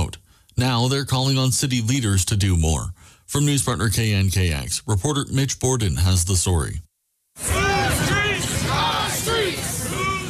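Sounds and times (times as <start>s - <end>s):
speech: 0.6s - 7.5s
large marching crowd shouting chants: 7.4s - 10.2s.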